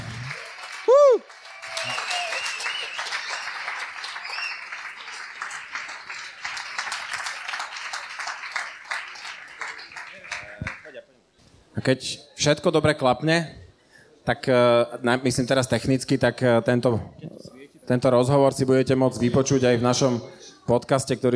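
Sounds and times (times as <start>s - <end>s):
audience applause: 0.0s - 11.0s
loud whistle-like tone: 1.8s - 3.3s
speech: 11.8s - 13.6s, 14.3s - 17.3s, 17.9s - 21.3s.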